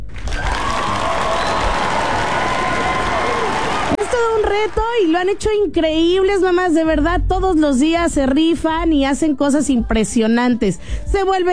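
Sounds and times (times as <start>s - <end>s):
standing ovation applause and cheering: 0.0s - 5.4s
speech: 4.6s - 11.5s.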